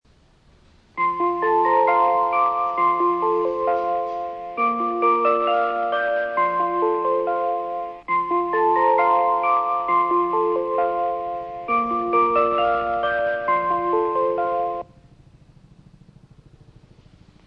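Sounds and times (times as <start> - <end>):
melody: 1.0 - 14.9.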